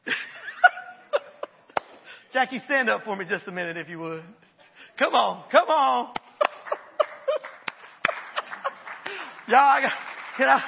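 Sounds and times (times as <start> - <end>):
laughter: 0.0 - 1.8, 6.4 - 9.8
speech: 2.3 - 4.4, 5.0 - 6.2, 9.5 - 10.6
scattered handclaps from a group: 6.1 - 10.6.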